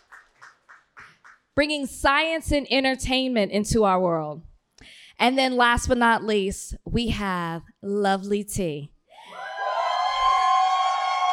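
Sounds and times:
speech: 1.6 - 4.5, 5.2 - 8.9
audience fans cheering as guests are announced onto a stage: 9.2 - 11.3.

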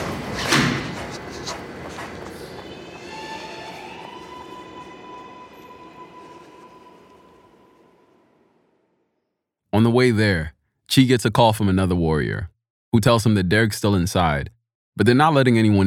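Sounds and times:
train pulling in: 0.0 - 8.6
speech: 9.8 - 15.8.

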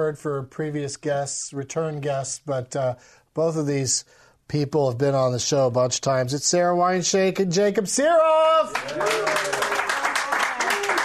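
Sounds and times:
speech: 0.0 - 9.4
crowd applauding: 8.7 - 11.0
voices cheering and whooping: 8.7 - 11.0.

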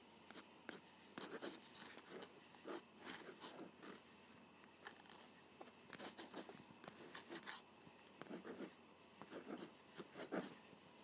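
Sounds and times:
ballpoint pen writing on paper: 0.3 - 4.0, 5.9 - 7.6, 8.2 - 10.6.

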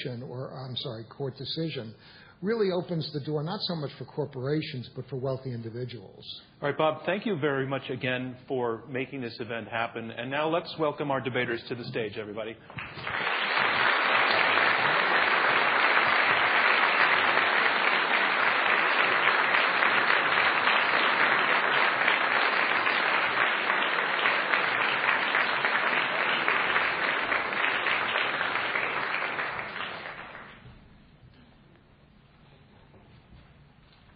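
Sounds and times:
speech: 0.0 - 13.4
audience applause: 12.7 - 30.6.

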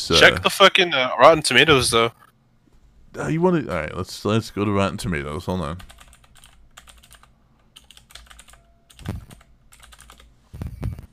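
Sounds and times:
speech: 0.0 - 2.2, 3.1 - 6.0
typing on a computer keyboard: 5.8 - 10.3.

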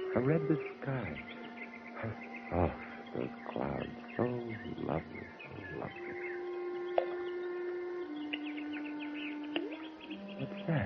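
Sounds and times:
birds chirping while playing in a fish pond: 0.0 - 10.8
speech: 0.2 - 1.4, 2.0 - 6.3, 10.4 - 10.8.

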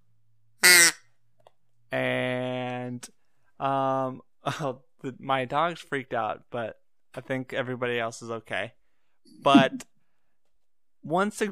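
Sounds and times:
duck call: 0.6 - 1.0
speech: 1.9 - 2.1, 3.0 - 9.9, 11.0 - 11.5
laughter: 9.5 - 9.8.

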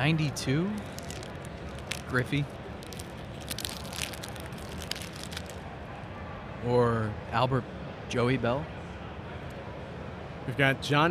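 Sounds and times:
speech: 0.0 - 1.0, 2.1 - 2.6, 6.6 - 8.8, 10.5 - 11.1
tearing open a pack of trading cards: 0.7 - 5.6.

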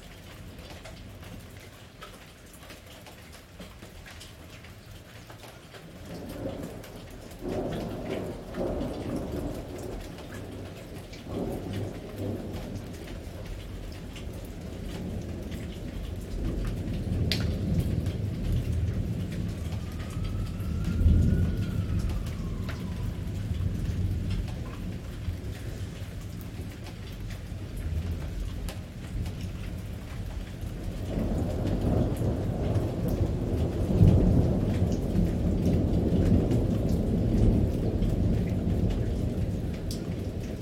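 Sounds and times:
heavy pouring rain: 0.0 - 40.6
thunder rolling: 6.3 - 26.8, 30.6 - 40.6.

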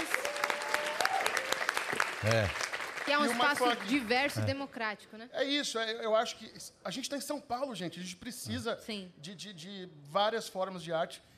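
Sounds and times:
audience applause: 0.0 - 4.5
speech: 2.2 - 11.3.

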